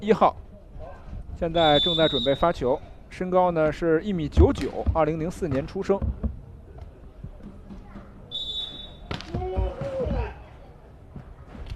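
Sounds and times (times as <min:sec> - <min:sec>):
speech: 0:00.0 - 0:00.5, 0:01.4 - 0:06.2
referee's whistle at a Qingdao volleyball match: 0:01.6 - 0:02.6, 0:08.3 - 0:09.2
court noise: 0:04.3 - 0:10.5.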